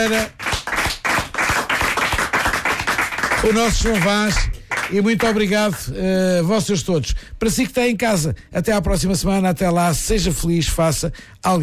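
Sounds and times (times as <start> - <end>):
speech: 0.0 - 0.4, 3.4 - 11.6
rhythmic group clapping: 0.0 - 5.9.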